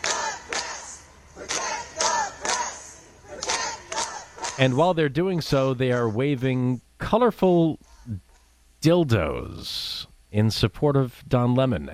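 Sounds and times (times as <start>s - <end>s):
crowd of supporters chanting a slogan outside court: 0.0s - 5.0s
speech: 4.6s - 11.9s.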